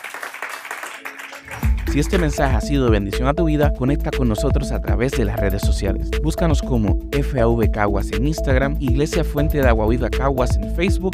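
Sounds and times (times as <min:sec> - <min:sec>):
audience applauding: 0:00.0 - 0:02.6
speech: 0:01.9 - 0:11.1.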